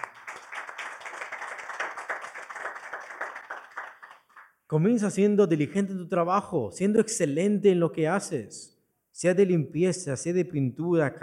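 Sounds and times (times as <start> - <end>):
crowd clapping: 0.0 - 4.6
speech: 4.7 - 11.2.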